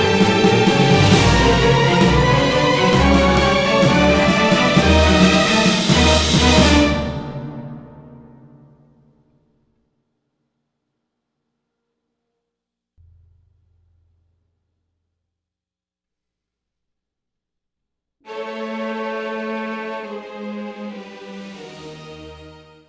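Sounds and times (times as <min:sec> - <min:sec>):
outro music: 0:00.0 - 0:08.9.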